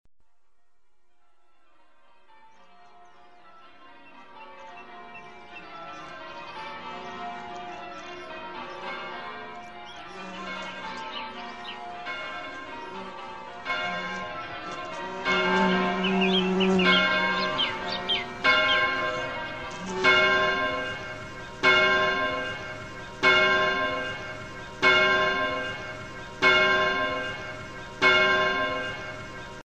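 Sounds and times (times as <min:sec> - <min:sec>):
bell: 0:01.1 - 0:29.6.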